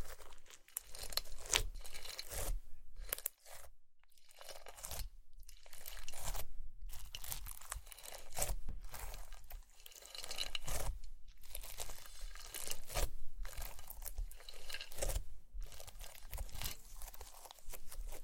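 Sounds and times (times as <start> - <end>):
slime squished and pressed: 0.0 - 18.2.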